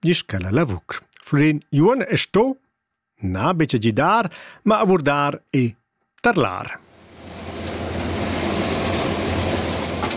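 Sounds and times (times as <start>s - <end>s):
speech: 0.0s - 2.6s, 3.2s - 6.8s
potato harvesting machinery running: 7.0s - 10.1s.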